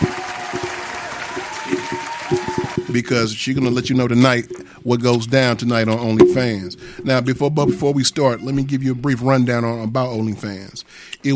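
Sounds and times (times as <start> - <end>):
crowd applause: 0.0 - 3.3
speech: 2.9 - 11.3.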